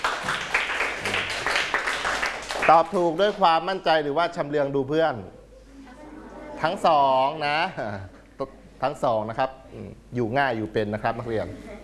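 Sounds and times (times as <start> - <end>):
clapping: 0.0 - 3.0
speech: 2.7 - 5.4, 6.6 - 11.8.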